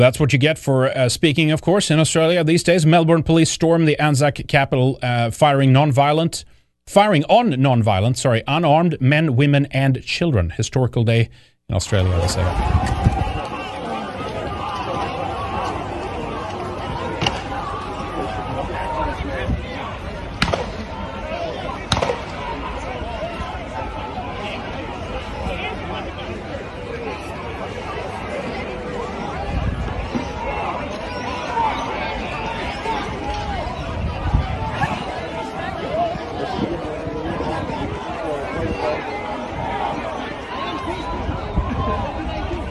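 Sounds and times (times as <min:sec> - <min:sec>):
speech: 0:00.0 - 0:13.3
hubbub of protesters' voices in Melbourne, Australia: 0:11.8 - 0:42.6.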